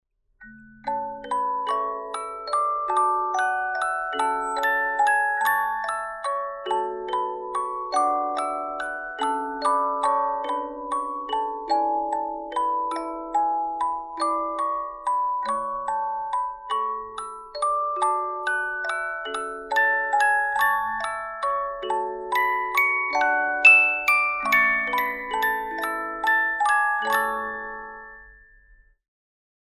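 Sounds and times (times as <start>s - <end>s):
music box playing a chorale: 0.4s - 29.0s.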